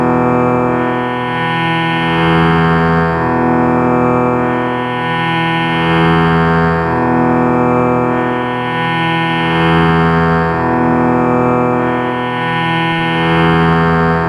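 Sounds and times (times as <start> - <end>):
sruthi drone in E: 0.0 - 14.2.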